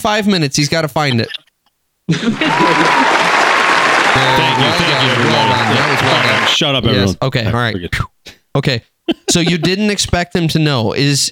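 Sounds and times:
speech: 0:00.0 - 0:01.4, 0:02.1 - 0:03.2, 0:04.1 - 0:11.3
laughter: 0:02.1 - 0:07.2, 0:09.1 - 0:10.1
applause sound effect: 0:02.2 - 0:06.6.

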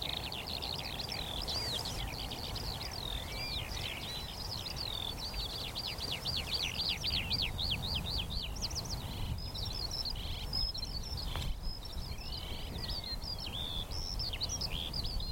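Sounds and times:
Eurasian skylark singing: 0:00.0 - 0:15.3
light wind noise: 0:00.0 - 0:15.3.

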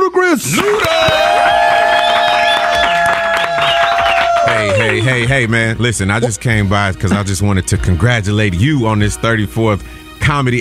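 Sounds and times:
studio crowd cheering and applauding: 0:00.4 - 0:05.7
whoops and high whistles from the crowd: 0:00.6 - 0:05.3
voices shouting over the roar: 0:01.1 - 0:05.3
speech: 0:05.0 - 0:10.6.

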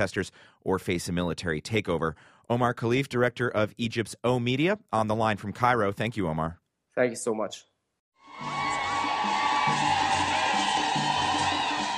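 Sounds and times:
speech: 0:00.0 - 0:07.7
ecstatic crowd in Tanzania cheering to welcome President Barack Obama: 0:08.2 - 0:11.9.

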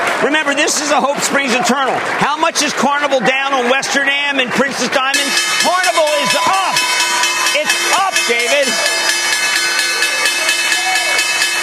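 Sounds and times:
speech: 0:00.5 - 0:06.9
murmuring voices: 0:00.6 - 0:11.6
stock exchange opening bell ringing: 0:05.1 - 0:11.6.

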